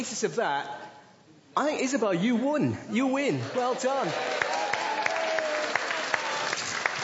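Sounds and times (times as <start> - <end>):
speech: 0.0 - 0.9, 1.6 - 4.6
round of applause: 3.4 - 7.0.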